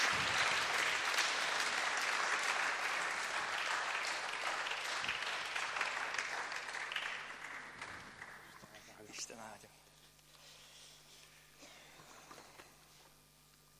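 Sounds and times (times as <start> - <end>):
crowd applauding: 0.0 - 8.9.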